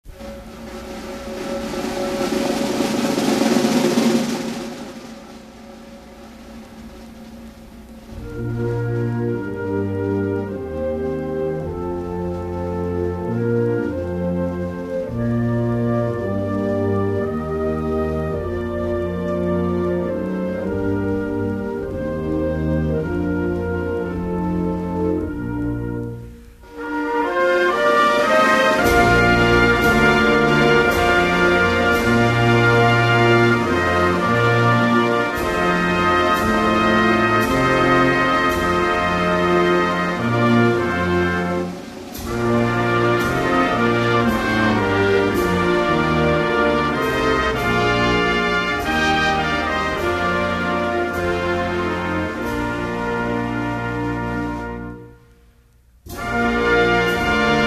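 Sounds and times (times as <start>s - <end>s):
anthem music: 0.0s - 57.6s.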